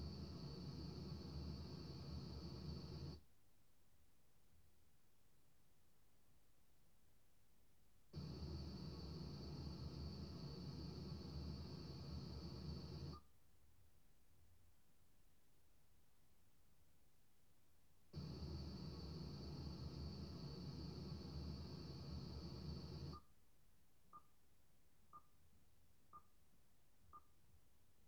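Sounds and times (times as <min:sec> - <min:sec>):
white noise in an announcer booth: 0:00.0 - 0:03.2, 0:08.2 - 0:13.2, 0:18.2 - 0:23.2.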